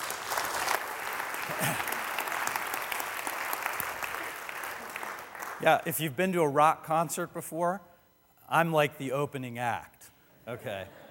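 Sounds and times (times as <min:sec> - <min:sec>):
audience applause welcoming a speaker: 0:00.0 - 0:05.8
speech: 0:05.6 - 0:07.9, 0:08.5 - 0:11.0.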